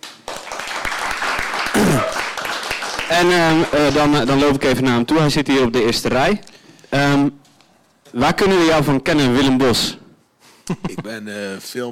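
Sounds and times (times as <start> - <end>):
people cheering: 0.0 - 4.0
audience applause: 0.0 - 4.5
speech: 3.1 - 7.4, 8.1 - 10.0, 10.7 - 11.9.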